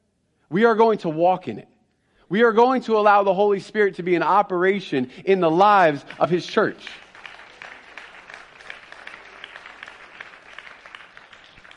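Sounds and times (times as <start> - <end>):
speech: 0.5 - 1.7, 2.3 - 7.0
audience applause: 6.0 - 11.7.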